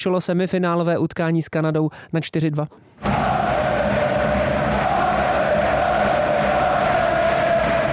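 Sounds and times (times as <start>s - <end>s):
speech: 0.0s - 3.5s
ice hockey fans clapping: 3.0s - 7.9s.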